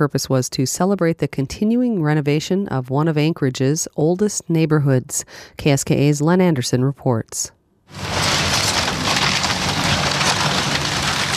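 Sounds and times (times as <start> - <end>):
speech: 0.0 - 8.3
steam shovel demolishing wooden buildings, timber splintering and cracking: 7.9 - 11.3.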